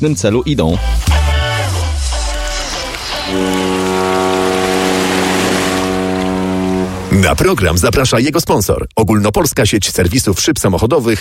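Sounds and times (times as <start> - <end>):
speech: 0.0 - 1.2, 3.3 - 3.7, 7.2 - 11.1
sea waves: 0.8 - 7.4.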